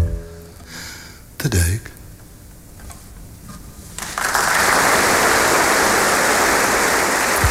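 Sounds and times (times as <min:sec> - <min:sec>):
speech: 0:01.4 - 0:02.0
audience applause: 0:04.0 - 0:07.4.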